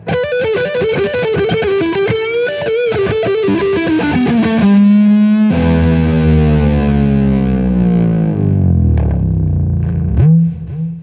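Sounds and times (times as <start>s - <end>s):
Guild S281 guitar at 12th fret: 0.0s - 11.0s.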